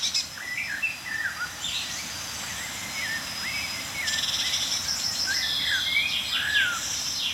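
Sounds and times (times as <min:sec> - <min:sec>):
blackbird chaffinch and tit calls chirping and trilling: 0:00.0 - 0:07.3
faint high-pitched hiss: 0:00.0 - 0:07.3.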